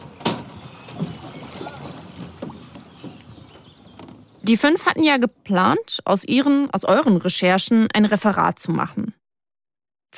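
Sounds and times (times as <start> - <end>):
water wash from a rowing boat moving along a river: 0.0 - 4.4
oars knocking and splashing: 0.0 - 4.9
faint wind: 0.0 - 9.1
speech: 4.5 - 9.2.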